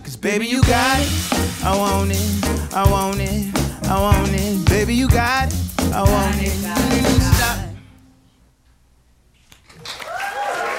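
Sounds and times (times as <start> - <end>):
speech: 0.2 - 6.9
audience clapping: 9.6 - 10.7
cheers and whoops: 9.8 - 10.7.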